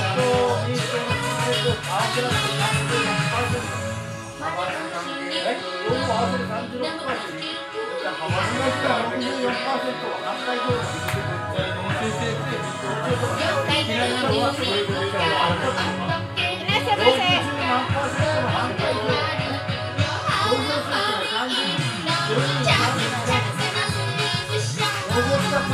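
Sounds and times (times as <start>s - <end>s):
karaoke ambience: 0.0s - 25.7s.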